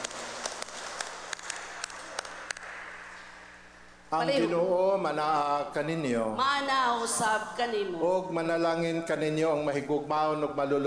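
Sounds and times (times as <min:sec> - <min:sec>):
scattered clapping during a church Mass honouring fathers: 0:00.0 - 0:03.4
hiss: 0:00.0 - 0:10.8
speech: 0:04.1 - 0:10.8.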